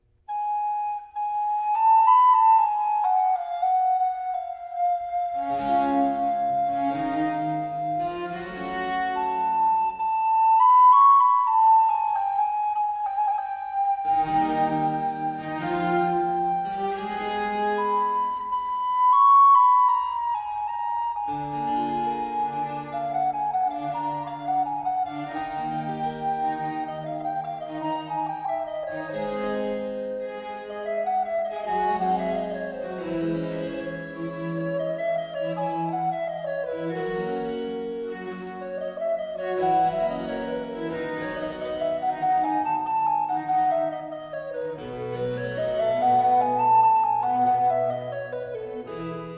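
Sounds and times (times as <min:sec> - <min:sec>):
recorder and strings playing a largo: 0:00.0 - 0:49.3.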